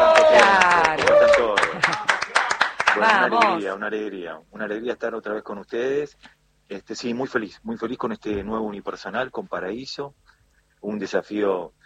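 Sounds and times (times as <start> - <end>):
studio applause: 0.0 - 3.7
speech: 3.1 - 11.8.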